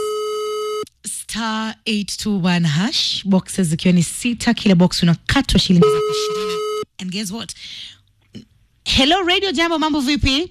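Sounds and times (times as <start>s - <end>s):
speech: 1.4s - 10.4s
telephone dialing tone: 5.8s - 6.8s.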